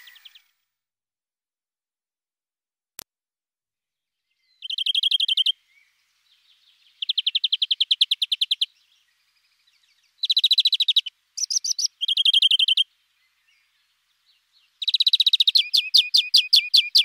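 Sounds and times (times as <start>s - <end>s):
European greenfinch song of quick chirps and twitters: 0.0s - 0.5s, 4.3s - 17.0s.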